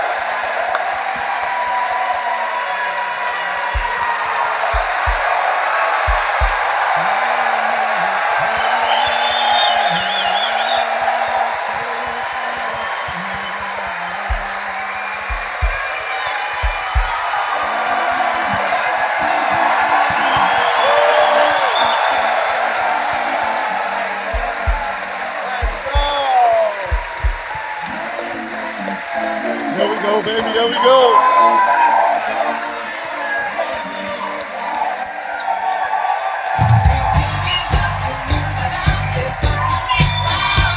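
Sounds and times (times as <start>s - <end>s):
crowd in a library cheering and applauding for Ryan Shazier: 0.0s - 40.7s.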